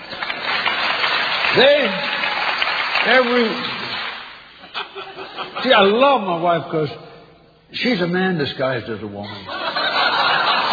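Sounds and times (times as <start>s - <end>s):
audience applause: 0.0s - 4.5s
speech: 1.6s - 2.1s, 3.0s - 3.8s, 5.6s - 7.1s, 7.7s - 9.6s
laughter: 4.6s - 6.0s, 9.2s - 10.7s.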